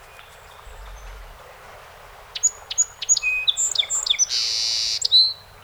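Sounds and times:
hiss and low rumble: 0.1s - 4.6s
song sparrow singing: 2.3s - 5.5s.

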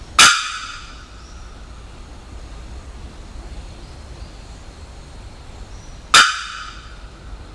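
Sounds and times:
bearded bellbird loud metallic bocks: 0.1s - 1.7s, 6.1s - 7.3s.

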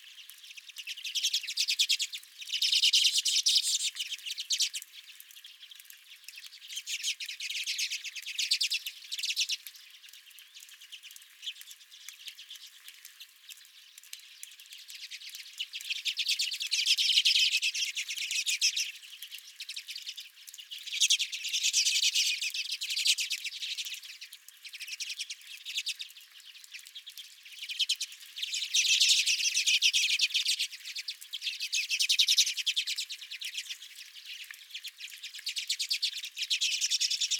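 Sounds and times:
redpolls twittering: 0.1s - 37.3s.

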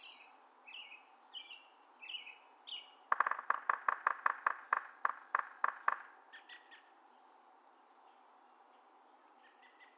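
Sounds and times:
yellow-bellied sapsucker drumming: 3.0s - 6.5s.

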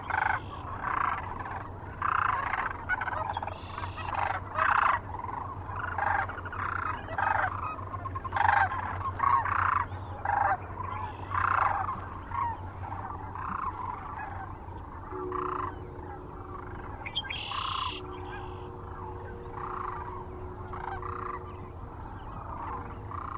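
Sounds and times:
Sandhill Crane flock giving rolling purring calls: 0.0s - 23.3s
steady low hum: 0.0s - 23.3s.

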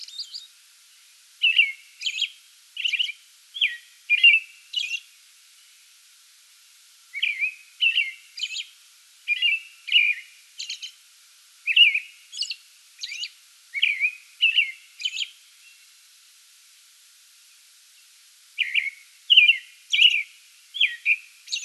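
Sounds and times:
American robin caroling: 1.4s - 5.0s, 7.1s - 8.7s, 9.3s - 11.0s, 11.6s - 15.4s, 18.6s - 21.6s.

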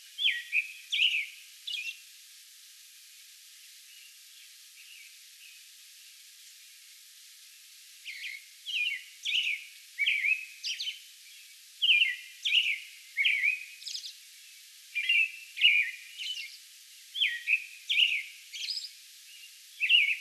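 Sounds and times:
American robin singing: 0.2s - 2.0s, 8.1s - 11.0s, 11.8s - 14.2s, 15.0s - 16.6s, 17.2s - 20.1s.

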